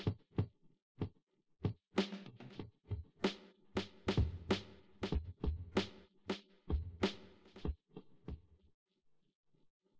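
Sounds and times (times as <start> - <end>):
instrumental with drums: 0.0 - 0.5, 1.6 - 8.5.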